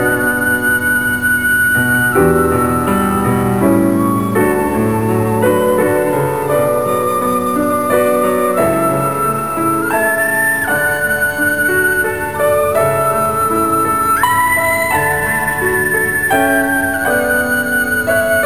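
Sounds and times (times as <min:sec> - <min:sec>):
flute in sci-fi flute and piano duet: 0:00.0 - 0:18.4
piano in sci-fi flute and piano duet: 0:00.0 - 0:18.4.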